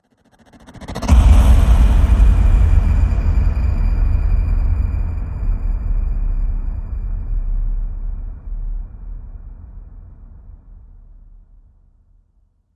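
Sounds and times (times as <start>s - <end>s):
stutter hit: 0.5s - 10.3s.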